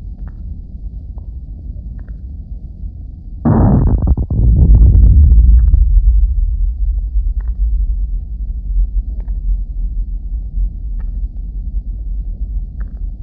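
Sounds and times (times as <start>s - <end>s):
seismograph recording of a strong local earthquake tremor: 3.5s - 13.2s.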